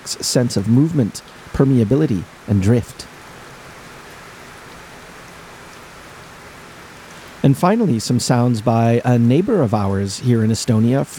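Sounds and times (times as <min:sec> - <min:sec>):
water trickling and flowing: 0:00.0 - 0:11.1
speech: 0:00.1 - 0:03.1, 0:07.4 - 0:11.1.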